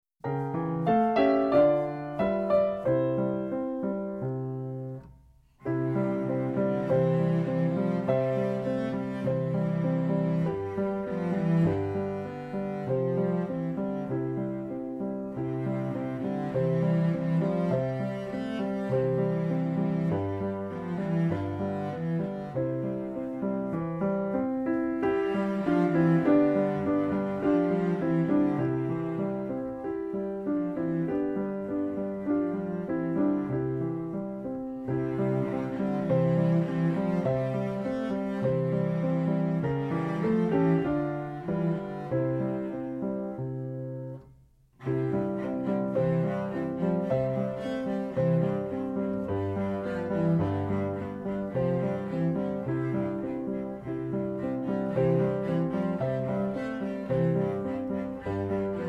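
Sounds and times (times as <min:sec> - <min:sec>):
piano: 0:00.0 - 0:58.8
cello: 0:00.2 - 0:58.8.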